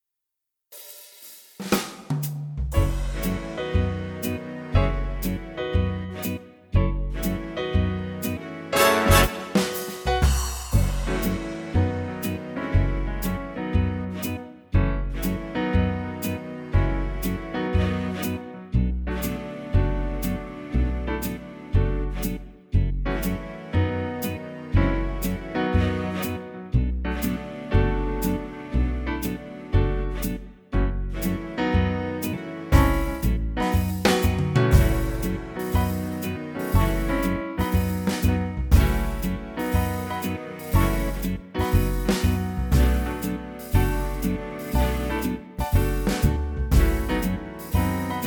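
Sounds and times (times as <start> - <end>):
fully orchestrated big band backing track in F sharp minor: 0.8 - 22.5, 23.1 - 48.2.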